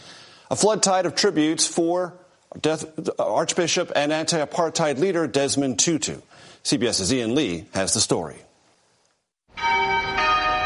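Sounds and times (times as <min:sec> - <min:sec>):
speech: 0:00.5 - 0:08.5
cathedral church bells tolling in Cape Town: 0:09.5 - 0:10.6.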